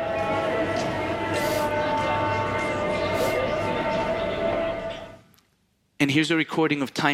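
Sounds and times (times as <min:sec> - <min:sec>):
Moroccan market ambience: 0:00.0 - 0:05.3
speech: 0:06.1 - 0:07.1.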